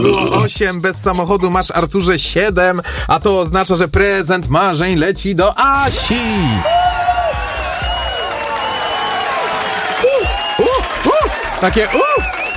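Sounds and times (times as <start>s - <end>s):
speech: 0.1s - 6.8s, 11.6s - 12.3s
applause and cheering: 5.8s - 12.5s.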